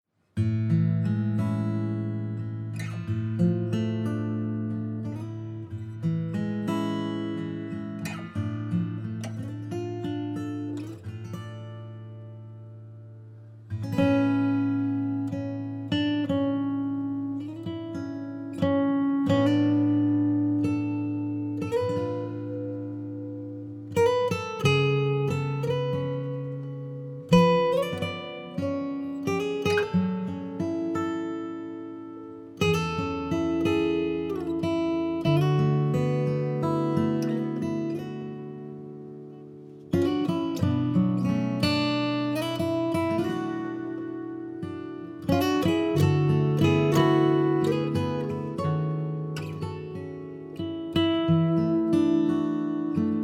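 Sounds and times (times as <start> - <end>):
guitar: 0.1 - 53.2.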